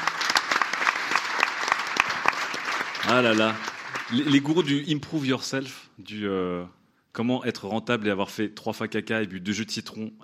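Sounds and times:
audience applause: 0.0s - 4.7s
speech: 3.0s - 10.2s.

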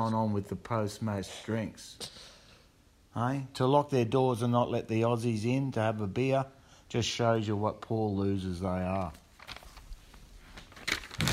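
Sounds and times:
speech: 0.0s - 2.3s, 3.1s - 9.2s
page being flipped: 9.0s - 11.3s.

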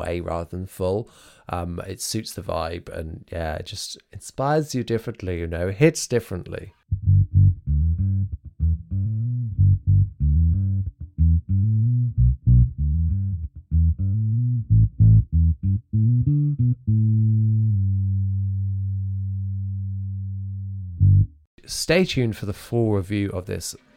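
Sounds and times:
speech: 0.0s - 7.1s, 21.7s - 23.9s
electric bass guitar playing with tone rolled off: 6.9s - 21.5s.

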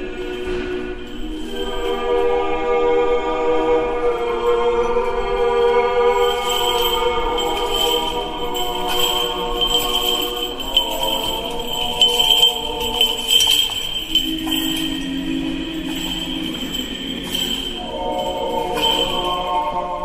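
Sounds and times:
choral singing: 0.0s - 20.0s
chains of a swinging hanging censer clinking: 6.0s - 20.0s.

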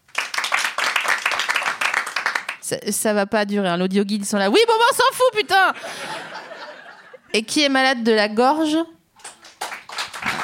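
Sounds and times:
audience applause as a show of hands: 0.1s - 2.6s, 9.2s - 10.4s
speech: 2.7s - 6.4s, 7.3s - 9.0s
laughter: 5.4s - 7.3s.

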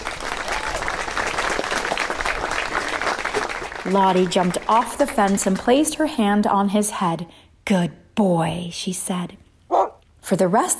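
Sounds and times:
class clapping: 0.0s - 5.9s
speech: 3.9s - 9.4s, 10.3s - 10.7s.

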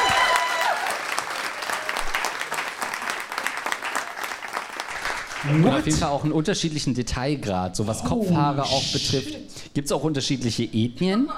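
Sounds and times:
audience applause: 0.0s - 6.0s
speech: 5.4s - 11.3s.

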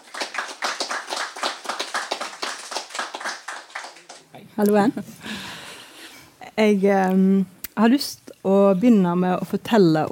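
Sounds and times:
audience applause: 0.0s - 4.4s
speech: 4.6s - 5.3s, 6.6s - 10.1s.

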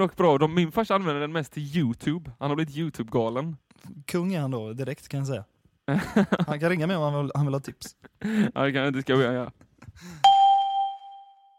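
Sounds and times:
speech: 0.0s - 10.3s
laughter: 5.9s - 6.7s
refrigerator chime: 10.2s - 11.5s.

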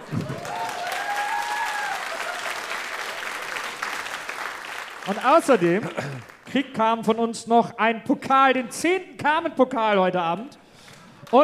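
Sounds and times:
audience applause: 0.0s - 6.6s
speech: 5.1s - 10.6s.

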